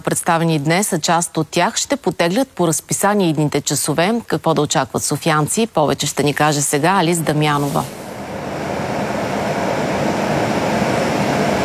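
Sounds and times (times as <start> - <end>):
speech: 0.0 - 8.0
ambience inside a new metro train car: 6.5 - 11.6.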